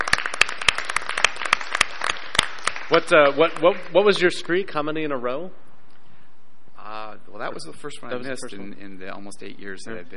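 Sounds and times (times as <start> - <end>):
round of applause: 0.0 - 4.5
speech: 2.9 - 5.6, 7.3 - 10.1.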